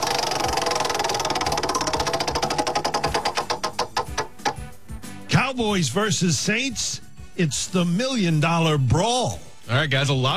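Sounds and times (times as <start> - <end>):
spinning prize wheel clicking: 0.0 - 4.7
speech: 5.5 - 10.3.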